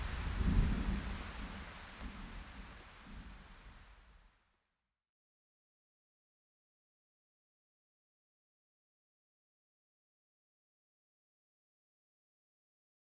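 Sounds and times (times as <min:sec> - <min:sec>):
thunder: 0:00.1 - 0:03.4.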